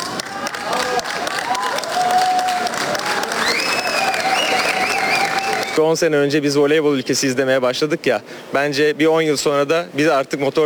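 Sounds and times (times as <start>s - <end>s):
cheering voices: 0.0s - 5.8s
crowd applause at an airport welcome: 0.0s - 5.8s
whistles: 3.4s - 5.8s
speech: 5.8s - 10.6s.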